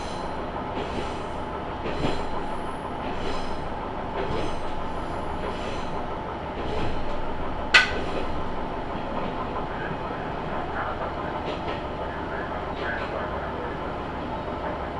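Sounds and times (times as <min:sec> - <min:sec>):
Tenryu Hamanako Railway railcar rumbling: 0:00.0 - 0:14.9
sharp clank: 0:07.7 - 0:08.1
murmured speech: 0:09.3 - 0:14.9.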